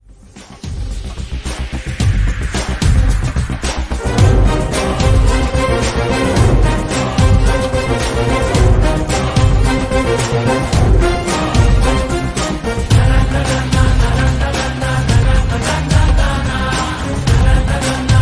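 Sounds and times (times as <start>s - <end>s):
background music ringtone: 0.1s - 18.2s.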